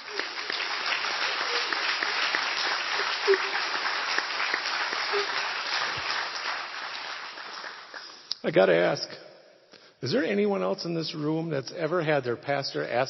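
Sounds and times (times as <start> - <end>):
audience applause: 0.0 - 8.3
speech: 8.5 - 9.2, 10.0 - 13.0.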